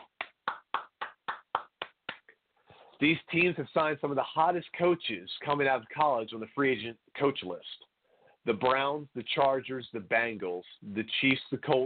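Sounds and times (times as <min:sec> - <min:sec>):
applause at a football league season kickoff honouring new coaches: 0:00.0 - 0:02.4
speech: 0:03.0 - 0:11.8.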